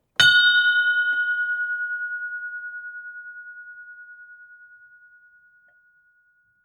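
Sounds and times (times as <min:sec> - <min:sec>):
bell ringing: 0:00.2 - 0:02.6.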